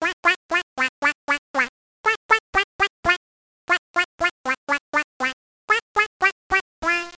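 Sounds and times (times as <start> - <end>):
duck: 0.0 - 7.1.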